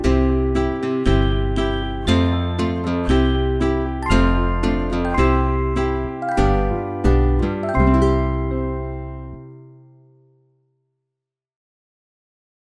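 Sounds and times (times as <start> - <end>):
instrumental nursery rhyme: 0.0 - 10.1.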